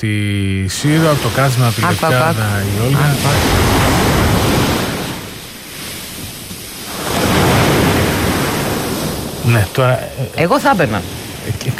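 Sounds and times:
speech: 0.0 - 4.1, 9.5 - 11.7
rough sea waves crashing on beach at Kathisma in Lefkada: 0.7 - 11.7.

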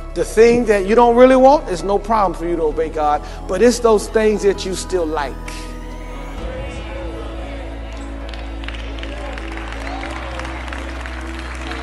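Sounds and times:
speech: 0.2 - 5.7
a few scattered hand claps from an audience: 7.8 - 11.8.

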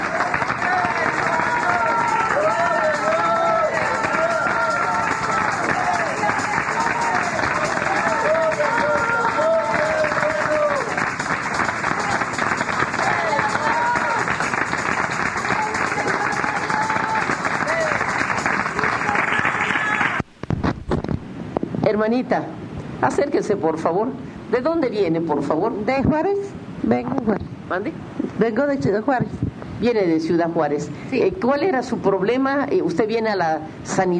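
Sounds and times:
people calling out and cheering: 0.0 - 20.2
audience applause: 0.0 - 20.3
speech: 22.0 - 34.1.

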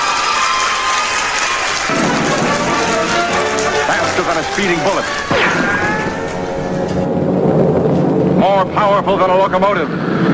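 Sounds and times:
crowd round of applause: 0.0 - 7.1
speech: 4.3 - 6.0, 8.4 - 10.3.

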